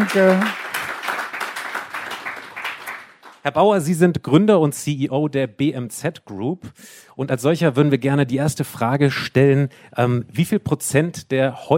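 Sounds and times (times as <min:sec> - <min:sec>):
speech: 0:00.0 - 0:00.6, 0:03.4 - 0:11.7
audience applause for guest: 0:00.0 - 0:03.4.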